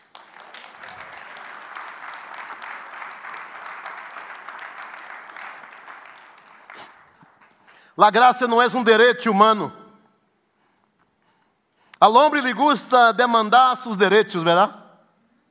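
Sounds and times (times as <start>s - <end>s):
audience applause: 0.0s - 7.7s
speech: 8.0s - 9.8s, 12.0s - 14.8s.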